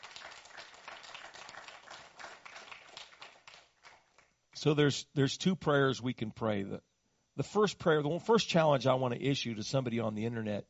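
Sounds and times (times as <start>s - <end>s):
audience clapping hands: 0.0s - 4.3s
speech: 4.6s - 10.6s.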